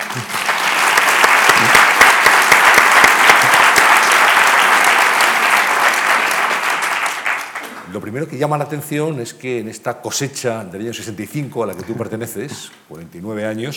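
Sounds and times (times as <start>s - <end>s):
audience applause: 0.0s - 7.9s
speech: 0.2s - 0.4s, 8.0s - 13.7s.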